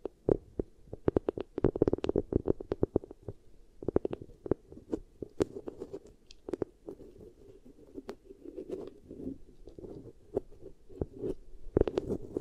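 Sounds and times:
beeswax crackling and popping against the ear: 0.0 - 12.3.

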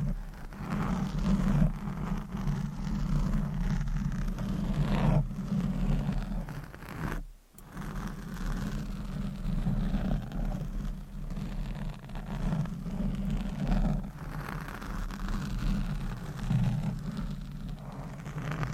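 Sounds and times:
scratching, brushing and stroking against a microphone: 0.0 - 18.7.

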